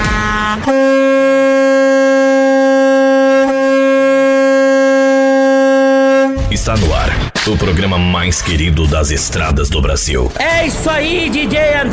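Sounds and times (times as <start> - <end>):
vehicle horn blaring: 0.0 - 6.5
speech: 0.6 - 1.0, 6.6 - 11.9.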